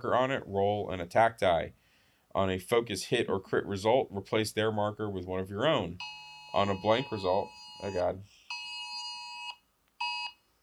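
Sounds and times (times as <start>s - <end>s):
speech: 0.0s - 1.8s, 2.4s - 8.4s
phone emergency alert tone: 6.0s - 10.4s.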